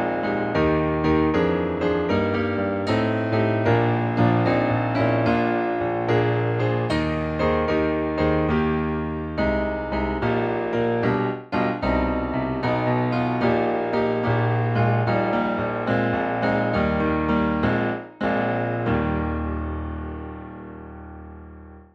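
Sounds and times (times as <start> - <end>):
hymn on piano: 0.0 - 21.9.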